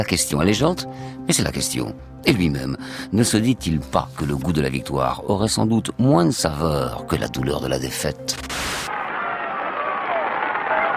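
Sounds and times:
speech: 0.0s - 8.8s
roadside crowd cheering and applauding at a cycling race for Raymond Poulidor: 8.9s - 10.9s.

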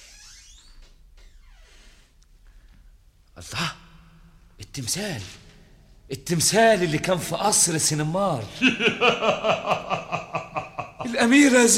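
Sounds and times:
door creaking open in a radio drama: 0.0s - 2.1s
speech: 3.4s - 3.8s, 4.8s - 5.4s, 6.1s - 10.1s, 11.1s - 11.7s
laughter: 8.5s - 11.2s.

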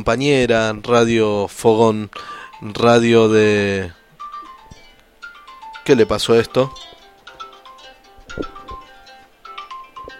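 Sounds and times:
speech: 0.0s - 4.0s, 5.8s - 6.9s, 8.4s - 8.6s
mobile phone melodic electronic ringtone with incoming call: 2.3s - 3.6s, 4.2s - 10.1s.

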